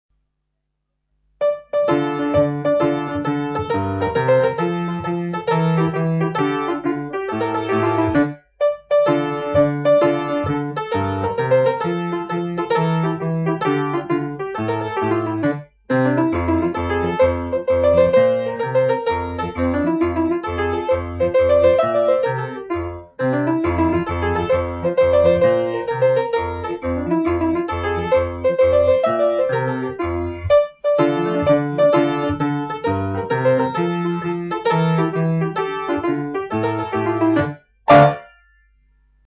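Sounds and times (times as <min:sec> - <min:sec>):
tarantella music: 0:01.4 - 0:38.8.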